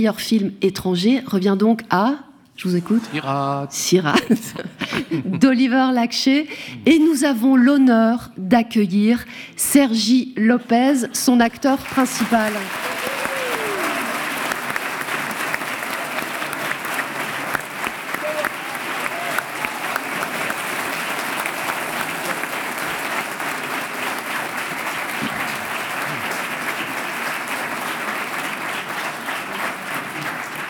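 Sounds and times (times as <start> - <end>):
speech: 0.0 - 12.9
laughter: 4.2 - 5.6
theatre audience applause: 11.8 - 30.6.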